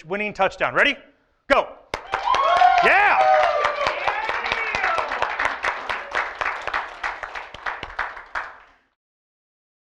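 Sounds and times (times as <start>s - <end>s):
speech: 0.0s - 1.8s, 2.8s - 3.3s
crowd clapping: 1.9s - 8.9s
whooping and hollering voices: 2.0s - 6.4s.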